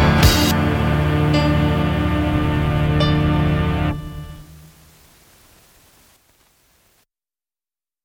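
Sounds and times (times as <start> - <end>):
hard bop jazz: 0.0 - 4.3.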